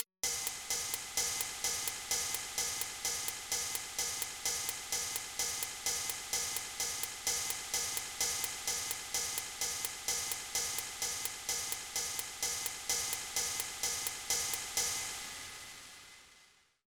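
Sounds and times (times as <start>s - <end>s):
constant hi-hats: 0.0s - 16.2s.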